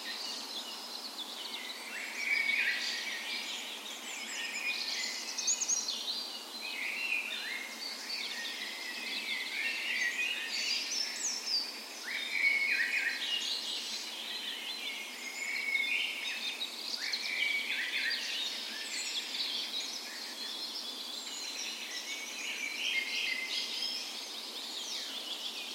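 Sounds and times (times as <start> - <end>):
dawn chorus of many birds: 0.0 - 25.7
faint continuous background hiss: 0.0 - 25.7.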